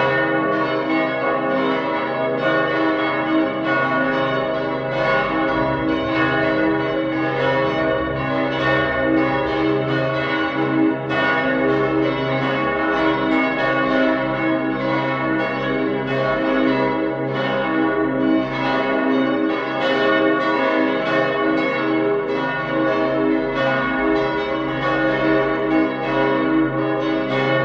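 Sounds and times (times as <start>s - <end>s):
cathedral bells ringing in partial peal on G sharp: 0.0s - 27.6s.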